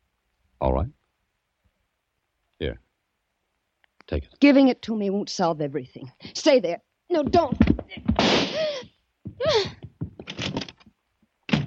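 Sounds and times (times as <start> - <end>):
speech: 0.6 - 1.0, 2.6 - 2.8, 4.1 - 8.7
door slamming shut: 10.2 - 10.8, 11.5 - 11.6.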